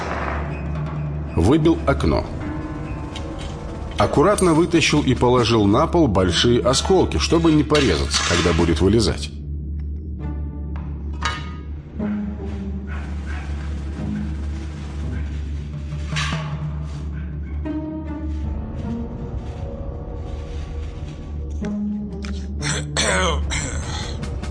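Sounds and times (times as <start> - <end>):
steady low rumble: 0.1 - 22.6
speech: 1.4 - 2.4, 4.0 - 9.4
footsteps shuffling: 12.4 - 16.2, 18.0 - 21.7
watchman coughing and clearing his throat: 22.6 - 24.2.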